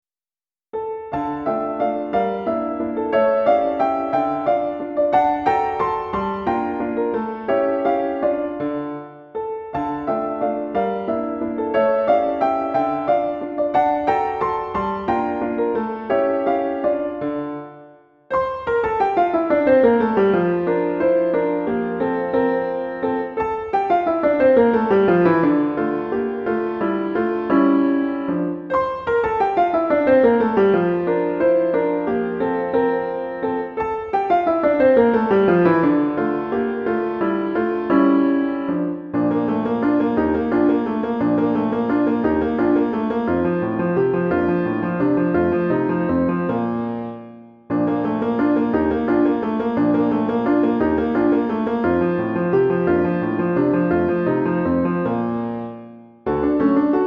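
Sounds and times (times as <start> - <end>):
piano waltz: 0.7 - 57.0.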